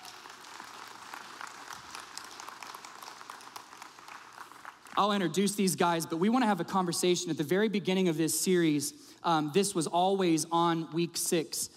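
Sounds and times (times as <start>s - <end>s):
church audience clapping as people come onto the stage: 0.0s - 5.4s
speech: 5.0s - 11.7s.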